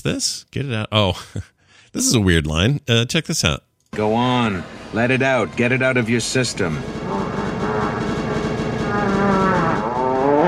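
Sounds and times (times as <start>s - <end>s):
speech: 0.0s - 7.1s
fart sound effect: 7.0s - 10.4s.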